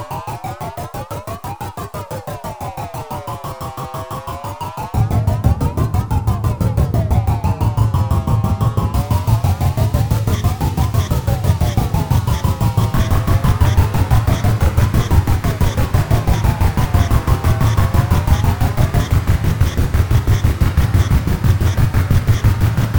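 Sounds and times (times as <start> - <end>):
white noise: 5.0 - 22.9.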